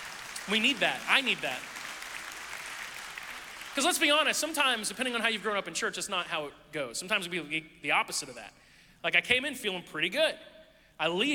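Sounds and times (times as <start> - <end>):
audience applause: 0.0 - 4.2
speech: 0.5 - 1.7, 3.8 - 11.3.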